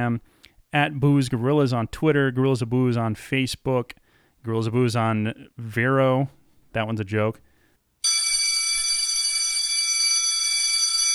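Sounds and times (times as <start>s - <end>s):
speech: 0.0s - 7.5s
bell ringing: 8.0s - 11.1s.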